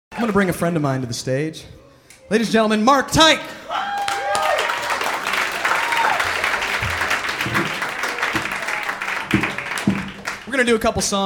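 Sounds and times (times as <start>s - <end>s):
speech: 0.2s - 3.9s, 10.6s - 11.2s
audience applause: 3.7s - 10.8s.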